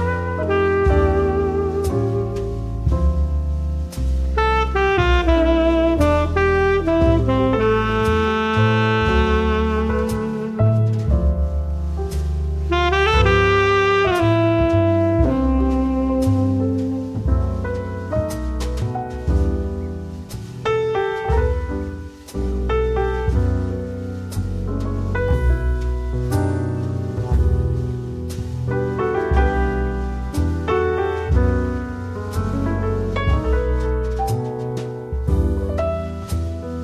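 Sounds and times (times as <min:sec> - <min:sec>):
jazz saxophone: 0:00.0 - 0:02.7, 0:04.4 - 0:11.3, 0:12.7 - 0:17.3
jazz bass: 0:00.0 - 0:36.8
jazz drums: 0:00.0 - 0:36.8
jazz piano: 0:00.0 - 0:36.8.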